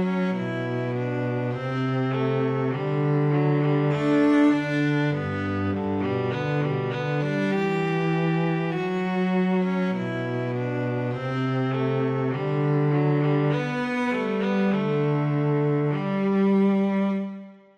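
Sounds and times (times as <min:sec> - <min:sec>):
viola and cello duet playing a wedding march: 0:00.0 - 0:17.6.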